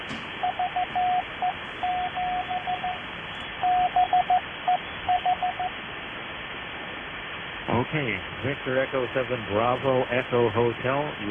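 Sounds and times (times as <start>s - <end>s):
CW Morse code radio signal tone: 0.4s - 3.0s, 3.6s - 5.8s
radio hiss: 1.2s - 11.3s
speech: 7.9s - 11.3s.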